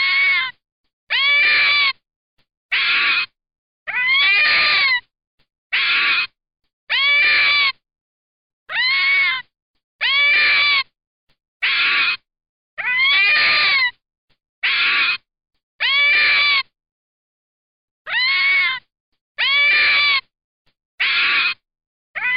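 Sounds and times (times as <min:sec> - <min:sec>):
red fox giving hoarse wailing screams: 0:00.0 - 0:00.5, 0:01.1 - 0:02.0, 0:02.7 - 0:05.0, 0:05.7 - 0:07.8, 0:08.7 - 0:09.4, 0:10.0 - 0:10.8, 0:11.6 - 0:12.2, 0:12.8 - 0:13.9, 0:14.6 - 0:15.2, 0:15.8 - 0:16.7, 0:18.1 - 0:18.8, 0:19.4 - 0:20.2, 0:21.0 - 0:21.6, 0:22.2 - 0:22.3.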